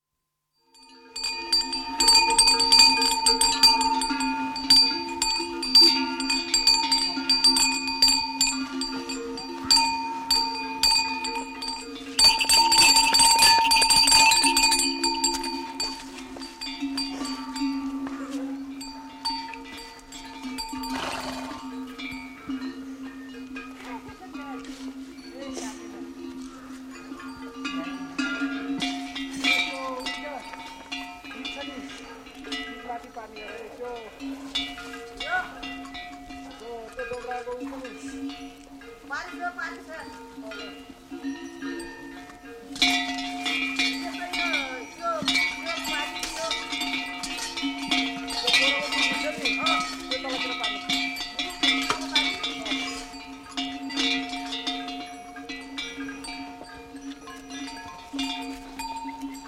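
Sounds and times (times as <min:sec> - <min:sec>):
mule bells near Annapurna in the Himalayas, Nepal: 0:00.0 - 0:59.4
minders chatting near Annapurna, Nepal: 0:01.9 - 0:05.2, 0:17.2 - 0:19.3, 0:23.8 - 0:26.3, 0:27.1 - 0:28.4, 0:29.4 - 0:30.6, 0:31.4 - 0:34.2, 0:36.5 - 0:38.3, 0:39.1 - 0:40.8, 0:43.9 - 0:46.9, 0:48.2 - 0:51.0, 0:51.6 - 0:53.1.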